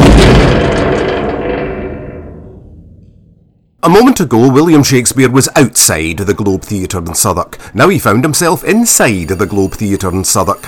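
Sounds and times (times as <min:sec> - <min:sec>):
heavy metal door slamming shut: 0:00.0 - 0:03.8
speech: 0:03.9 - 0:10.6.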